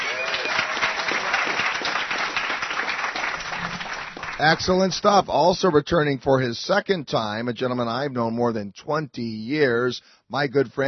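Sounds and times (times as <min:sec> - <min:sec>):
crowd applause: 0:00.0 - 0:05.1
speech: 0:04.4 - 0:10.8.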